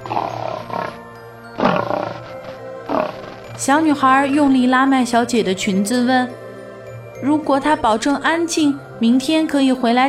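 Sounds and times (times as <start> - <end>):
lion roaring: 0.0 - 3.6
speech: 3.6 - 6.4, 7.2 - 10.0.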